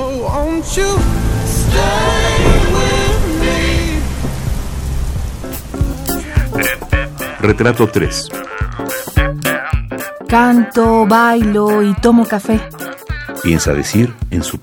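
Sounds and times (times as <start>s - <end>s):
steady rain hissing: 0.0s - 9.6s
speech: 0.3s - 2.2s, 7.4s - 8.5s, 10.3s - 12.8s, 13.4s - 14.6s.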